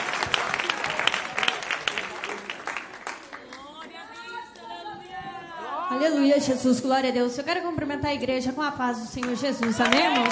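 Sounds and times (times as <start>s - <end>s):
crowd applauding: 0.0s - 4.7s, 9.2s - 10.3s
speech: 6.0s - 10.3s.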